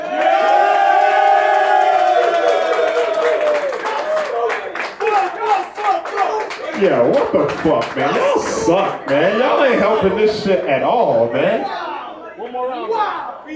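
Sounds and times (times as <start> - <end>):
scattered clapping and whoops: 0.0 - 9.4
live crowd cheering and shouting: 0.0 - 13.5
speech: 6.8 - 11.8, 13.4 - 13.5.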